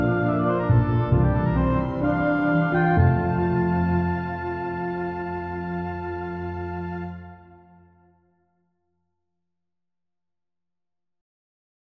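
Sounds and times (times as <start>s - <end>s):
piano ensemble: 0.0s - 8.0s.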